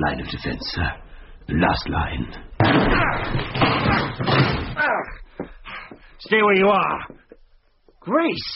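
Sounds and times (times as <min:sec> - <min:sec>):
speech: 0:00.0 - 0:05.0, 0:06.2 - 0:07.2, 0:08.0 - 0:08.5
dense continuous clattering noise: 0:02.6 - 0:04.8
door being kicked in: 0:02.6 - 0:04.8.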